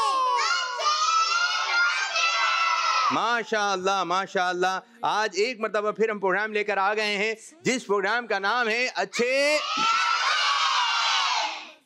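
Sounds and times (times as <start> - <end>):
children in a studio audience at a kids' programme shouting and cheering: 0.0 - 3.2, 9.2 - 11.8
speech: 3.1 - 10.0.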